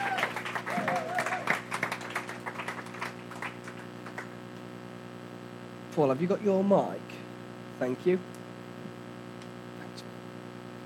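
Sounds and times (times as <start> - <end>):
audience round of applause: 0.0 - 4.4
speech: 6.0 - 7.2, 7.8 - 8.4.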